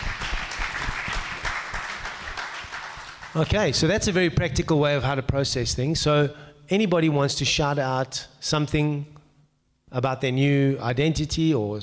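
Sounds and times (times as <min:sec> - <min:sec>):
crowd clapping: 0:00.0 - 0:03.6
speech: 0:03.4 - 0:09.1, 0:09.9 - 0:11.8.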